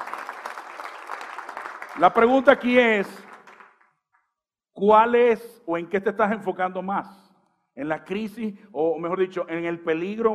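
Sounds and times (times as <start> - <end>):
audience applause: 0.0 - 3.8
speech: 2.0 - 3.3, 4.8 - 7.2, 7.8 - 10.3.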